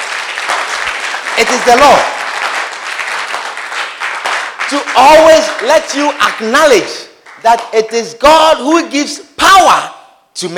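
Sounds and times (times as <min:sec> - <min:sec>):
audience clapping: 0:00.0 - 0:08.1
speech: 0:01.4 - 0:02.2, 0:04.7 - 0:10.5.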